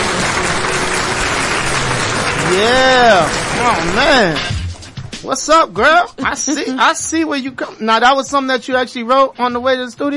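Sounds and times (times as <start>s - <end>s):
round of applause: 0.0s - 4.5s
speech: 2.5s - 4.5s, 5.2s - 10.1s.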